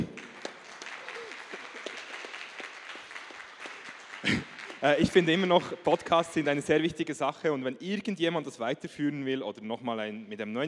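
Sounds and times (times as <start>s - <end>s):
applause: 0.0s - 7.0s
speech: 4.2s - 10.6s.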